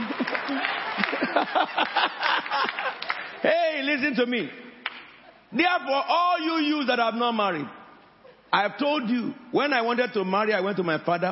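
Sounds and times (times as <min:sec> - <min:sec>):
laughter: 0:00.0 - 0:03.5
audience clapping: 0:00.0 - 0:05.2
speech: 0:01.4 - 0:02.4, 0:03.4 - 0:04.7, 0:05.5 - 0:07.8, 0:08.5 - 0:11.3.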